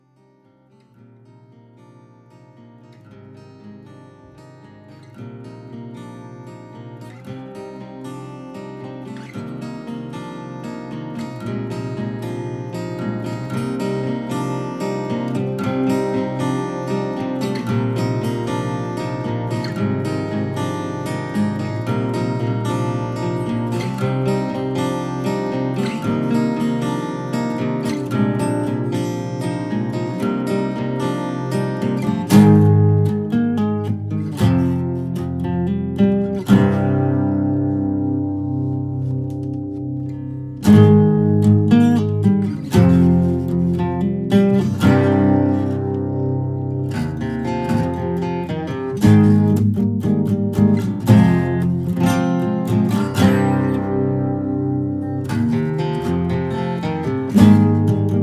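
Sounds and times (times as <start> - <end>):
guitar: 0.0 - 58.2.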